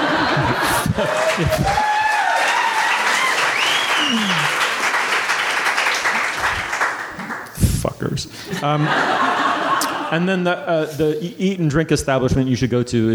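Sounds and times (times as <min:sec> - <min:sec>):
laughter: 0:00.0 - 0:02.1, 0:08.5 - 0:10.7
crowd whistling and cheering: 0:00.0 - 0:05.0
crowd applause: 0:00.0 - 0:07.5
speech: 0:01.0 - 0:01.9, 0:08.2 - 0:09.2, 0:10.1 - 0:13.1.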